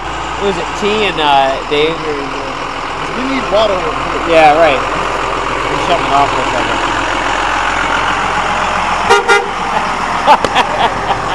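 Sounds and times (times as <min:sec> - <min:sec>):
engine idling: 0:00.0 - 0:11.3
traffic: 0:00.0 - 0:11.3
speech: 0:00.4 - 0:02.4, 0:03.2 - 0:04.9, 0:05.9 - 0:06.9, 0:10.3 - 0:11.2
car horn beeping: 0:09.0 - 0:09.6
laughter: 0:09.6 - 0:11.3.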